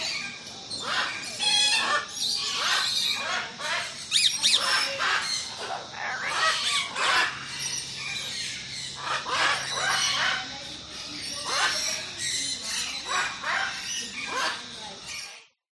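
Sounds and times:
parrots and parakeets squawking and chattering in a tropical aviary in Australia: 0.0s - 15.6s.

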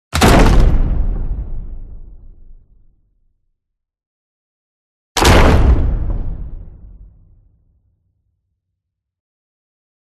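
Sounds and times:
cinematic wood impact hit: 0.2s - 2.8s, 5.2s - 7.4s.

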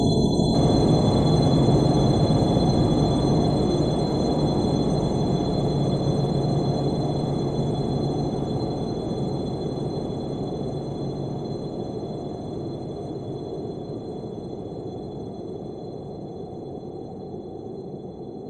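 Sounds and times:
spacious haunting science fiction drone: 0.2s - 17.3s
eerie shrill tone: 0.6s - 11.0s.

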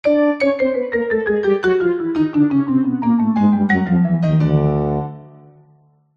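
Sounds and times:
descending cartoon music on piano, tuba and marimba: 0.1s - 5.6s.

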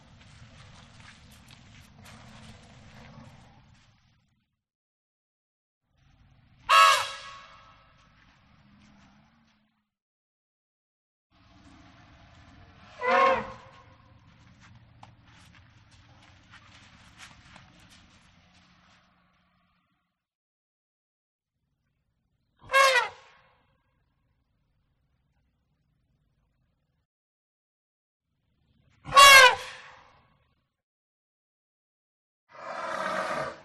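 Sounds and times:
elephant: 0.0s - 4.4s, 5.9s - 9.8s, 11.3s - 20.0s, 22.6s - 23.4s, 28.5s - 30.1s, 32.5s - 33.6s.

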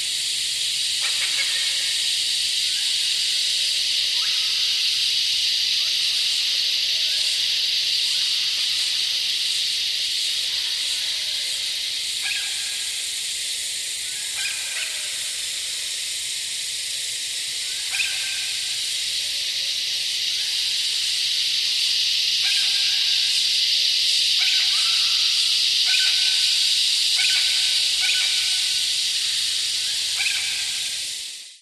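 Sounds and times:
cicadas in a rainforest in the evening: 0.0s - 31.5s
insects in a rainforest in the evening: 0.0s - 31.5s
birds in a rainforest in the evening: 0.6s - 31.4s.

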